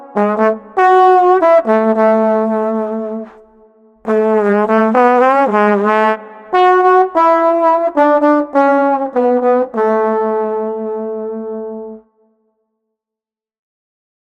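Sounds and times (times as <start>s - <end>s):
street trombone playing: 0.0s - 3.4s, 4.1s - 12.0s.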